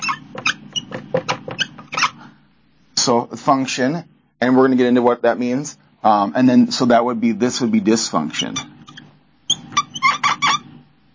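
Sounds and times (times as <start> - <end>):
marker squeaking on whiteboard: 0.0 - 2.3, 8.2 - 10.9
speech: 3.1 - 8.7.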